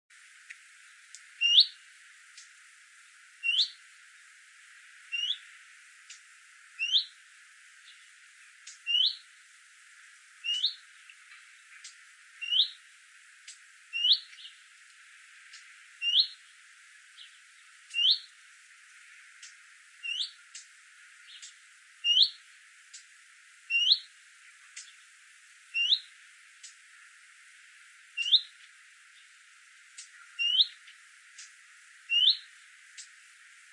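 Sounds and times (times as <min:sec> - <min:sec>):
faint clicks: 0:00.4 - 0:01.3, 0:02.3 - 0:02.6, 0:06.0 - 0:06.3, 0:08.6 - 0:08.9, 0:11.0 - 0:12.0, 0:13.4 - 0:13.7, 0:19.4 - 0:19.6, 0:20.5 - 0:20.7, 0:21.4 - 0:21.6, 0:22.9 - 0:23.1, 0:24.6 - 0:25.0, 0:26.6 - 0:26.8, 0:29.9 - 0:30.2, 0:30.8 - 0:31.6, 0:32.9 - 0:33.2
leaf warbler chirping: 0:00.8 - 0:01.9, 0:03.4 - 0:03.8, 0:05.1 - 0:07.2, 0:07.8 - 0:09.4, 0:10.4 - 0:12.9, 0:13.9 - 0:14.7, 0:15.5 - 0:18.4, 0:19.4 - 0:26.8, 0:28.1 - 0:33.2.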